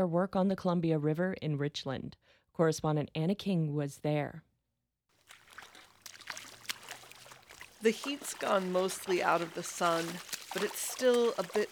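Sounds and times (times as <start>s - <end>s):
speech: 0.0s - 4.5s, 7.8s - 11.6s
scientists in dry suits splashing in the Columbia River shallows: 5.2s - 11.6s.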